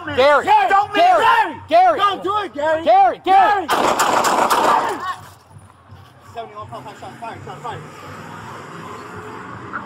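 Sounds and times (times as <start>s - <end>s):
people shouting urgently: 0.1s - 5.3s
rapid gunshots in police bodycam video: 3.7s - 5.1s.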